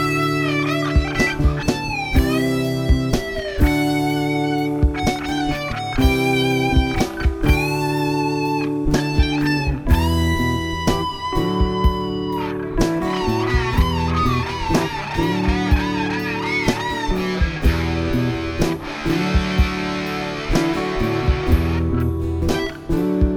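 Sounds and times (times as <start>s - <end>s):
double-tracked solo: 0.0s - 22.9s.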